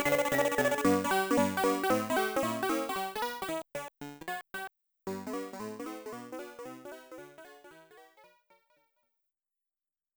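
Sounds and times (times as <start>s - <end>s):
in-game main theme music: 0.0s - 4.4s, 5.2s - 8.3s.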